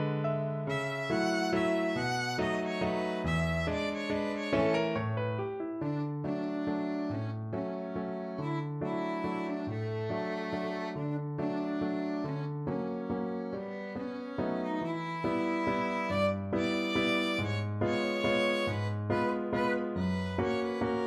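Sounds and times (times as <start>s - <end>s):
waltz on violin: 0.6s - 21.0s.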